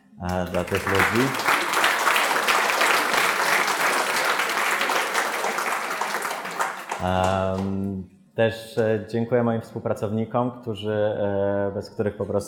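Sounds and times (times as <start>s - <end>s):
speech: 0.2s - 1.6s, 7.0s - 12.4s
audience applause: 0.3s - 7.6s.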